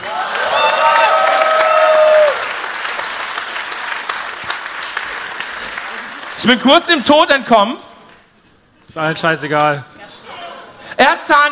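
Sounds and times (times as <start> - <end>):
audience applause: 0.0 - 6.6
speech: 6.4 - 7.9, 8.9 - 9.9, 11.0 - 11.5.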